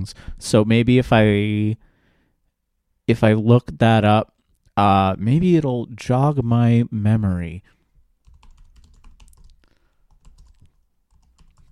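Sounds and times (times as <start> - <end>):
speech: 0.0 - 1.9, 3.1 - 7.8
fast typing on a computer keyboard: 8.2 - 11.7.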